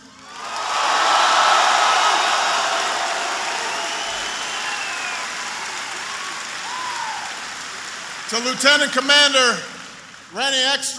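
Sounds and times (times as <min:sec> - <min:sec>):
audience applause: 0:00.2 - 0:10.4
speech: 0:08.3 - 0:09.7, 0:10.3 - 0:10.9.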